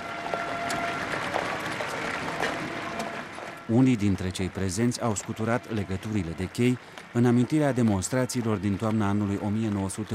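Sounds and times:
crowd bursting into spontaneous applause: 0:00.0 - 0:10.1
speech: 0:03.7 - 0:10.1.

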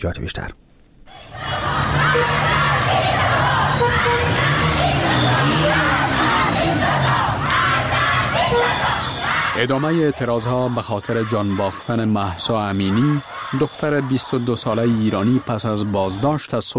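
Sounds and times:
speech: 0:00.0 - 0:00.6, 0:09.6 - 0:16.7
schoolgirls chanting an anti-regime slogan at a protest in Qom, Iran: 0:01.1 - 0:09.7, 0:12.7 - 0:14.5.

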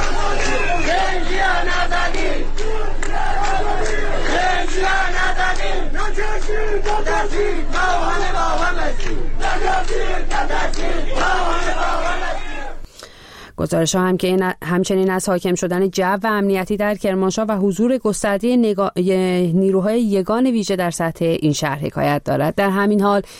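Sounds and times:
protest crowd chanting and shouting: 0:00.0 - 0:12.8
speech: 0:13.6 - 0:23.3.

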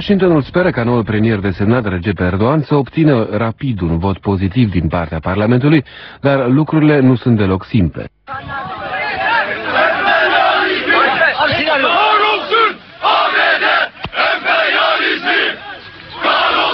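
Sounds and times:
speech: 0:00.0 - 0:08.8
protesters chanting anti-American slogans: 0:08.3 - 0:16.7.

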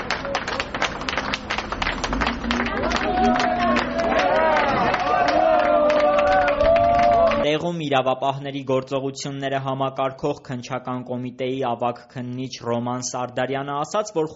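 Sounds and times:
crowd murmur: 0:00.0 - 0:07.4
citizens gathered outside clapping ironically: 0:00.0 - 0:07.5
speech: 0:07.9 - 0:14.3.

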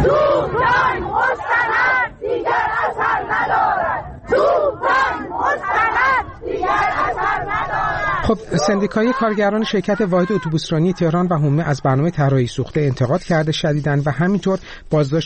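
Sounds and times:
protesters chanting slogans: 0:00.0 - 0:12.2
speech: 0:08.3 - 0:15.2.

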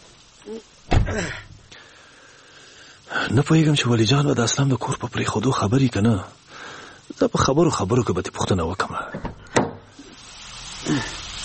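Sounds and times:
speech: 0:00.4 - 0:01.5, 0:03.2 - 0:06.4, 0:07.1 - 0:09.3, 0:10.8 - 0:11.2
car door slamming shut: 0:00.9 - 0:01.2.

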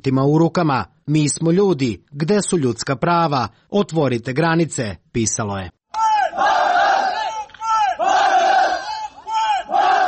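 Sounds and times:
speech: 0:00.0 - 0:05.8
crowd of protesters chanting: 0:06.0 - 0:10.0.

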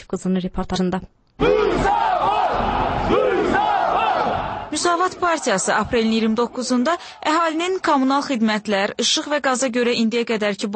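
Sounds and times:
speech: 0:00.1 - 0:03.7, 0:04.7 - 0:10.7
roar of many people: 0:01.4 - 0:06.8
protest rally crowd chanting: 0:01.4 - 0:08.8.

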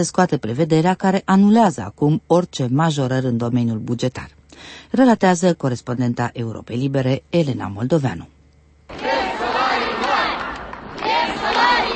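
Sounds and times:
speech: 0:00.0 - 0:09.1
large crowd of protesting teachers shouting and chanting: 0:08.9 - 0:11.9.

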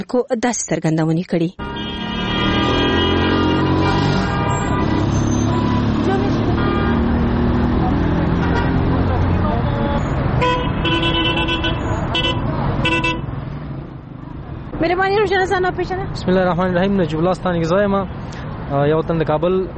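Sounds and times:
speech: 0:00.0 - 0:01.7, 0:14.8 - 0:19.7
car horn toots: 0:01.6 - 0:07.3, 0:09.6 - 0:13.3
traffic engine and road noise at a car and bus stop in Kabul: 0:01.6 - 0:19.7.

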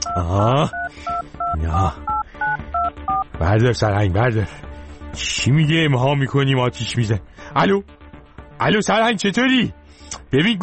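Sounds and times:
telephone keypad touch-tone beeps: 0:00.0 - 0:03.3
speech: 0:00.2 - 0:02.1, 0:03.4 - 0:08.0, 0:08.6 - 0:10.6.

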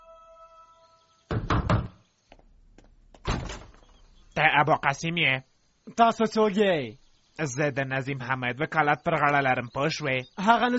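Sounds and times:
lawyer knocking on a door: 0:01.3 - 0:02.0
speech: 0:04.4 - 0:10.7.

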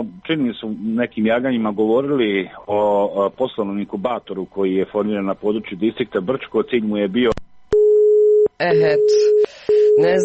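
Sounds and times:
speech: 0:00.0 - 0:07.4, 0:08.6 - 0:10.2
telephone busy signal: 0:07.8 - 0:10.2.

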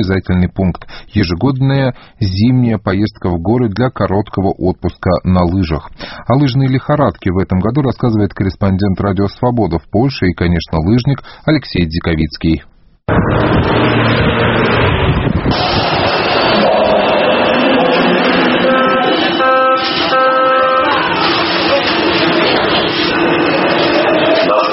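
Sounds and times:
speech: 0:00.0 - 0:16.2
car engines roaring in traffic jams: 0:13.1 - 0:24.7
murmur of hundreds of passengers talking on public transport: 0:16.6 - 0:24.7.

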